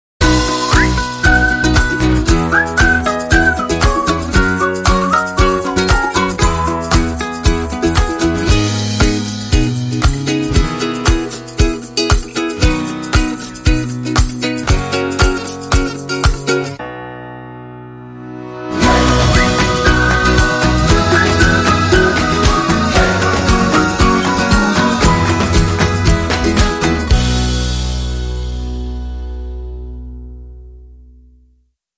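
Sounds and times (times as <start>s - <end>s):
ukulele: 0.2s - 16.8s, 18.6s - 31.1s.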